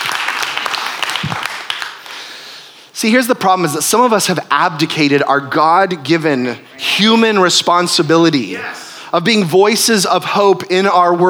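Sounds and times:
audience clapping for a speaker: 0.0s - 8.8s
speech: 3.0s - 11.2s.

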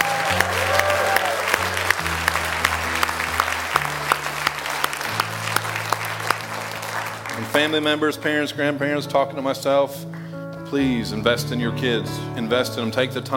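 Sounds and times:
audience clapping in praise: 0.0s - 8.3s
speech: 7.6s - 13.3s.

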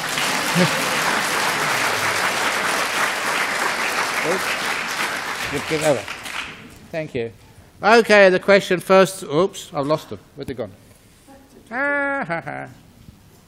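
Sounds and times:
laughter: 0.0s - 2.8s, 11.7s - 12.8s
audience applause: 0.0s - 6.8s
speech: 0.6s - 0.9s, 4.2s - 4.6s, 5.5s - 6.2s, 6.9s - 10.8s, 11.7s - 12.8s.

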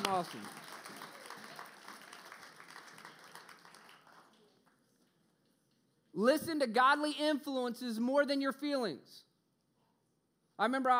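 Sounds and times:
audience applause: 0.0s - 4.7s
speech: 0.1s - 0.7s, 6.2s - 9.3s, 10.6s - 10.9s.

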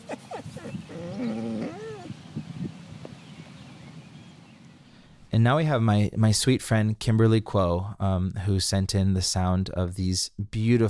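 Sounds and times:
dog whining and yelping: 0.0s - 2.2s
speech: 5.4s - 10.8s.

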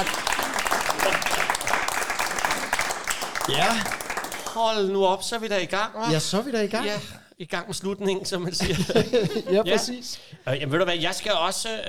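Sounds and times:
laughter: 0.0s - 4.3s, 8.1s - 10.1s
crowd applause: 0.0s - 4.9s
speech: 3.5s - 4.0s, 4.6s - 11.8s.

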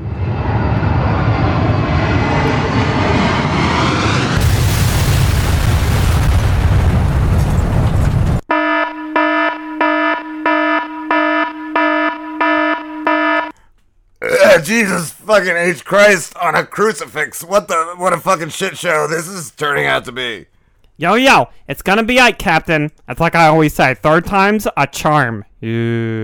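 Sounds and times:
jet airplane engine roaring: 0.0s - 5.6s
airplane crashing into a tower: 0.0s - 8.4s
pulsing electronic alarm beeping: 8.5s - 13.5s
speech: 14.7s - 26.2s.

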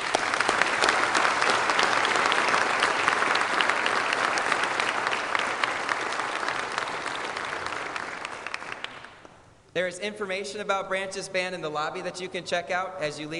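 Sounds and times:
crowd applause for a band: 0.0s - 9.4s
speech: 9.8s - 13.3s.

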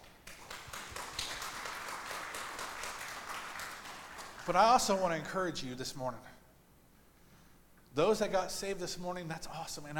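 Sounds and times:
church audience applause: 0.2s - 4.5s
speech: 4.5s - 6.3s, 8.0s - 9.9s.

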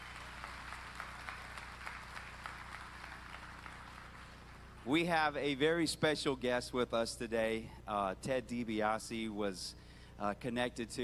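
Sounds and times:
church congregation applauding: 0.0s - 5.0s
speech: 4.8s - 11.0s.

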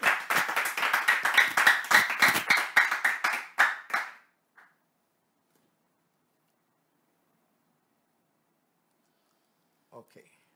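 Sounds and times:
hand clapping: 0.0s - 4.8s
speech: 10.0s - 10.4s.

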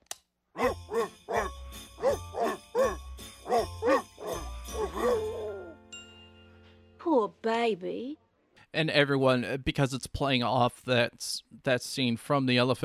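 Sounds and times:
recording of barking dogs singing a tune: 0.6s - 5.8s
soft musical backing: 0.9s - 7.0s
speech: 7.7s - 12.8s.

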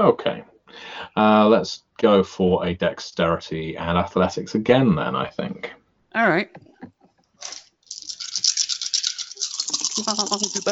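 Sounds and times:
speech: 0.0s - 6.7s, 10.0s - 10.7s
dice rattling and rolling: 7.4s - 10.7s.

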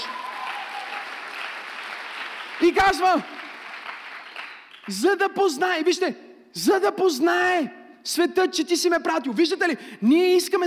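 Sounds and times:
audience applauding: 0.0s - 5.0s
speech: 2.6s - 3.4s, 4.9s - 10.6s.

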